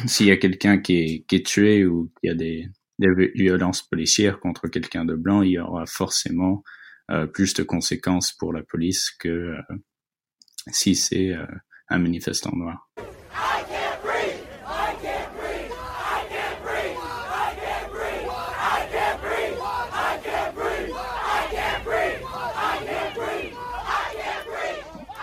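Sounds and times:
speech: 0:00.0 - 0:09.9, 0:10.6 - 0:13.5
large protest crowd chanting a slogan outside a police station: 0:13.0 - 0:25.2
laughter: 0:13.4 - 0:25.2.

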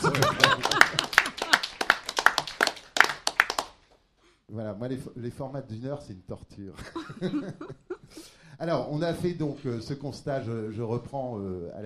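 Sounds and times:
laughter: 0:00.0 - 0:01.8, 0:06.8 - 0:08.2
rhythmic audience clapping: 0:00.0 - 0:04.1
speech: 0:04.7 - 0:11.8.

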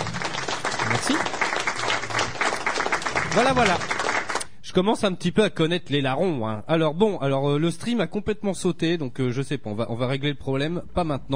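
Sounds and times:
applause sound effect: 0:00.0 - 0:04.5
speech: 0:03.4 - 0:04.0, 0:04.8 - 0:11.3.

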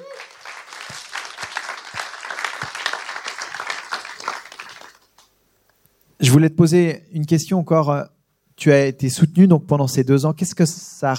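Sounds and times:
audience applause: 0:00.0 - 0:05.3
speech: 0:06.2 - 0:11.1.

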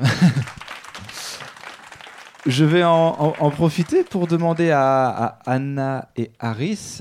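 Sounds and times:
laughter: 0:00.0 - 0:00.6
audience applause: 0:00.0 - 0:04.9
speech: 0:02.5 - 0:06.9.

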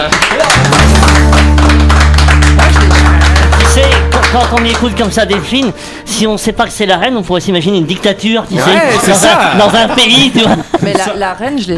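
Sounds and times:
laughter: 0:00.0 - 0:00.9, 0:08.6 - 0:11.2
audience clapping: 0:00.0 - 0:05.8
low sustained musical tone: 0:00.6 - 0:08.3
speech: 0:04.4 - 0:11.7.

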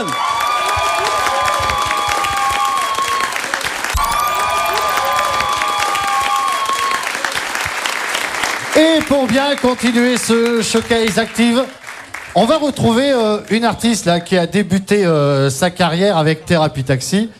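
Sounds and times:
audience applause for a performer: 0:00.0 - 0:13.6
speech: 0:09.1 - 0:11.8, 0:12.4 - 0:17.3.

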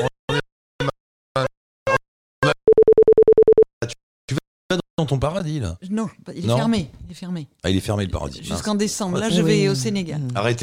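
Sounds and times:
mid-pitched phone tone pulsing after a dropped call: 0:02.7 - 0:03.7
speech: 0:05.0 - 0:10.6.

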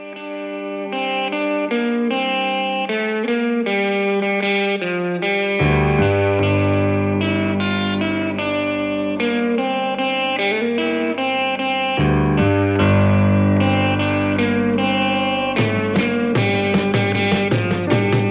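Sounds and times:
distorted effects-laden guitar: 0:00.0 - 0:18.2
microtonal psychedelic rock music: 0:00.0 - 0:18.2
heavy bass: 0:05.6 - 0:09.2, 0:11.8 - 0:18.2.

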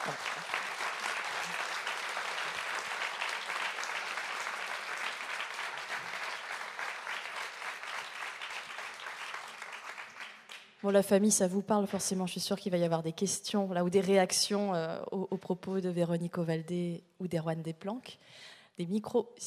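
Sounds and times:
audience applause: 0:00.0 - 0:10.7
speech: 0:10.8 - 0:19.4.

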